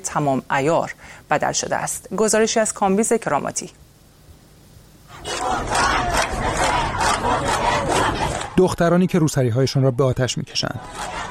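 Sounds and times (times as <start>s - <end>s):
speech: 0.1s - 3.8s, 8.6s - 11.2s
angry protesters shouting in the streets: 5.1s - 8.6s, 10.7s - 11.2s.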